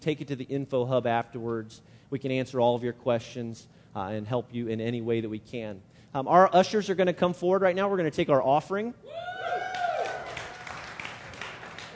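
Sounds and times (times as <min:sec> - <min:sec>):
speech: 0:00.0 - 0:09.5
whoops and whistles: 0:09.1 - 0:10.6
audience cheering and clapping: 0:09.1 - 0:11.9.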